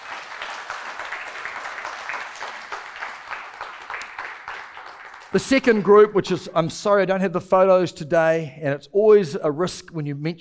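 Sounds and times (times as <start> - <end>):
crowd applauding: 0.0 - 6.1
speech: 5.3 - 10.4.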